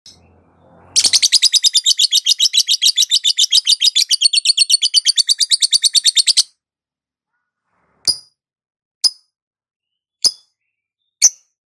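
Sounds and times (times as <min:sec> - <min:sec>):
lovebird chattering: 0:01.0 - 0:06.4.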